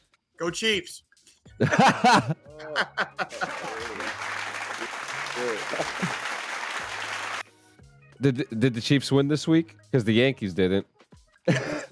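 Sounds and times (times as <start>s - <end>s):
speech: 0.4s - 6.3s, 8.2s - 11.8s
laughter: 1.6s - 7.4s, 11.5s - 11.9s
audience cheering: 3.2s - 7.4s.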